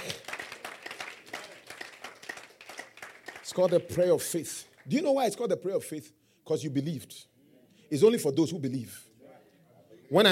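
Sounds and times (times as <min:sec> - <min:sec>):
audience clapping: 0:00.0 - 0:05.2
speech: 0:03.5 - 0:07.3, 0:07.9 - 0:09.1, 0:10.1 - 0:10.3.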